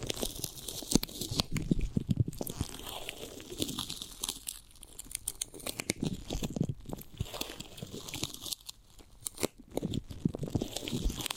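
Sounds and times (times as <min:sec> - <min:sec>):
chewing and biting into a giant gummy bear: 0:00.0 - 0:11.3.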